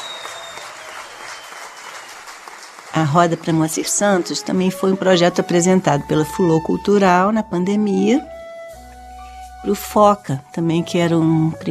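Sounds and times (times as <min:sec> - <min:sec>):
audience applause welcoming a drummer and singer: 0:00.0 - 0:04.3
speech: 0:03.0 - 0:08.4, 0:09.6 - 0:11.6.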